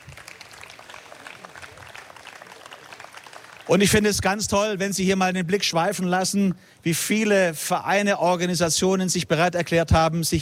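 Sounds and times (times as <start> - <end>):
audience applause: 0.0 - 4.3
speech: 3.7 - 10.4.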